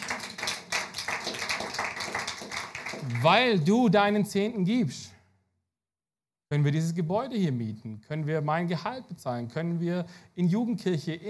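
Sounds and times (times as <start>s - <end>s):
audience applause: 0.0s - 3.4s
speech: 3.2s - 5.1s, 6.5s - 11.2s.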